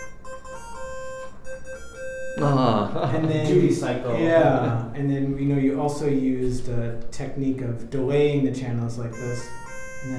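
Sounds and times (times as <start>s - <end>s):
Famicom sound chip square-wave tones playing a melodic line: 0.0s - 2.9s, 9.1s - 10.1s
laughter: 2.4s - 5.0s
speech: 2.4s - 10.1s.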